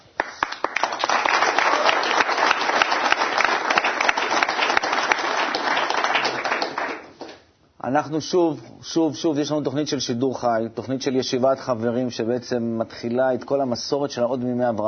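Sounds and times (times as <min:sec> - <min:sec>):
audience applause: 0:00.0 - 0:07.4
speech: 0:07.9 - 0:14.8.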